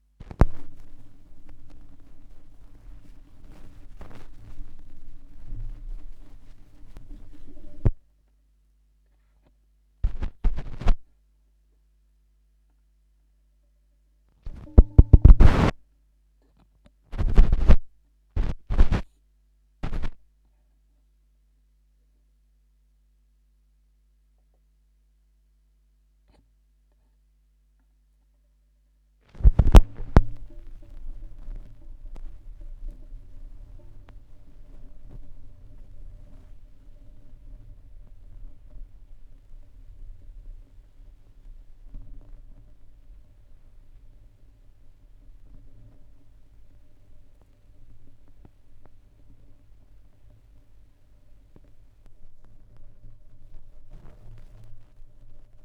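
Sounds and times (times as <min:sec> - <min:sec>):
vinyl record noise: 0:00.1 - 0:08.1, 0:10.0 - 0:11.0, 0:14.4 - 0:15.8, 0:17.1 - 0:19.0, 0:19.8 - 0:20.2, 0:29.3 - 0:55.6.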